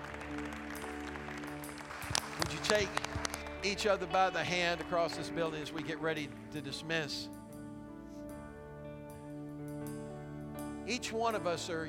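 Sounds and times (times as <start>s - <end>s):
audience hand clap applause: 0.0s - 6.6s
speech: 2.7s - 7.4s, 10.9s - 11.8s.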